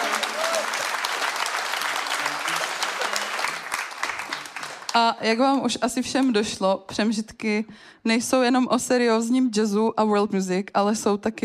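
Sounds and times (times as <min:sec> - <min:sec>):
audience applause: 0:00.0 - 0:05.1
speech: 0:05.0 - 0:11.4.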